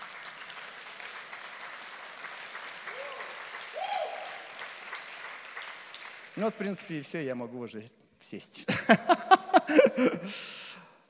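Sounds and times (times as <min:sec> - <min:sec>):
audience applause: 0:00.0 - 0:06.9
speech: 0:06.4 - 0:10.6
laughter: 0:08.6 - 0:10.4.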